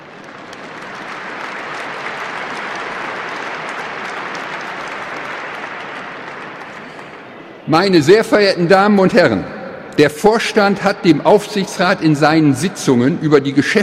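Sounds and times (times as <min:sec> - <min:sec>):
sustained applause from a large audience: 0:00.0 - 0:07.7
speech: 0:07.7 - 0:13.8.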